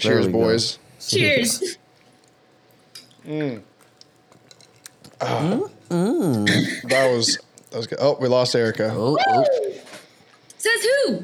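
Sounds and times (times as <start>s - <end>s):
speech: 0.0s - 1.8s, 3.2s - 3.7s, 5.2s - 9.7s, 10.6s - 11.2s
person choking after a sip of whiskey: 5.2s - 7.1s.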